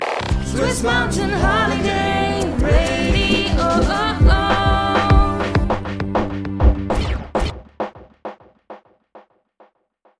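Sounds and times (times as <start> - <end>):
a cappella singing: 0.3 - 5.8
instrumental music: 0.3 - 8.8.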